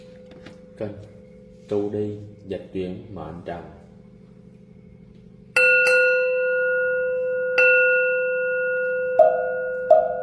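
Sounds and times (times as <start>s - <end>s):
temple bell struck in a Buddhist meditation setting: 0.0s - 3.3s, 5.5s - 10.2s
faint low drone: 0.0s - 10.2s
speech: 0.8s - 3.8s.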